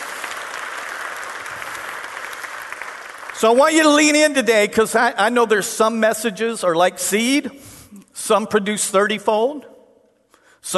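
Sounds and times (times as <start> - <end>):
audience applause: 0.0 - 4.0
speech: 3.4 - 9.7.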